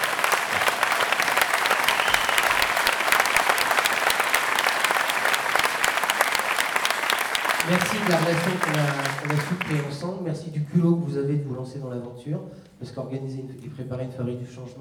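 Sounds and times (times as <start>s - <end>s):
audience applause: 0.0s - 10.1s
speech: 7.7s - 14.7s.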